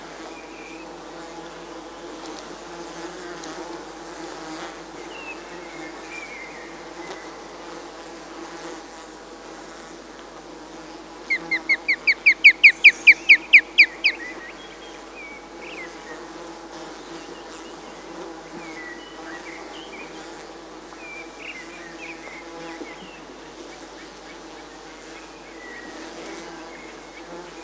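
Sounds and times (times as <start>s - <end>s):
osprey calling: 11.3s - 14.9s.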